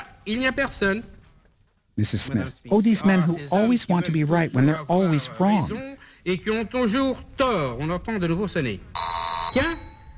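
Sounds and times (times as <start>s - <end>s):
speech: 0.2s - 1.1s, 2.0s - 9.9s
doorbell ringing: 9.0s - 10.1s.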